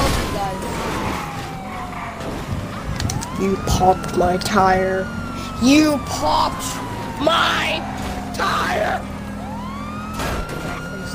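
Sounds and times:
police car sirens in the video game GTA V: 0.0s - 11.1s
speech: 3.4s - 9.1s.

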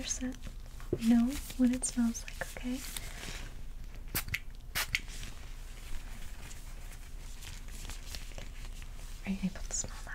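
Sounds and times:
speech: 0.0s - 3.4s, 9.3s - 10.0s
mist spray bottle spraying: 4.2s - 5.1s.

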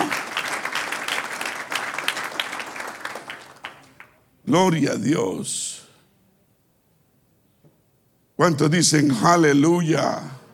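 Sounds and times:
audience applause: 0.0s - 4.1s
speech: 4.5s - 5.7s, 8.4s - 10.4s.

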